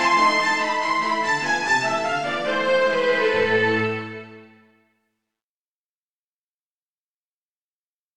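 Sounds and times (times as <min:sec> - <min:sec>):
strings: 0:00.0 - 0:04.9.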